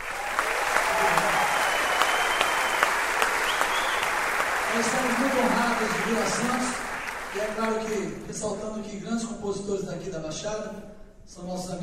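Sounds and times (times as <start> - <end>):
audience applause: 0.0 - 8.2
speech: 5.8 - 11.8.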